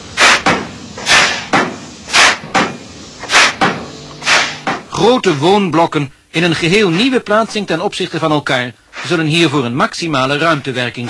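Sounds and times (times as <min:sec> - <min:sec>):
hissing bursts: 0:00.0 - 0:05.5, 0:08.8 - 0:09.4
pile driver thudding: 0:00.2 - 0:04.9
speech: 0:05.0 - 0:11.0.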